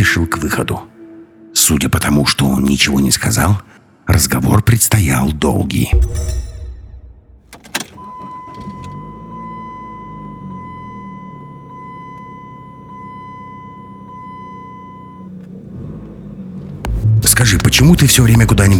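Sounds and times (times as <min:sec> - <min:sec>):
speech: 0:00.0 - 0:00.9, 0:01.6 - 0:06.5, 0:17.4 - 0:18.7
car speeding along a highway: 0:07.4 - 0:18.7.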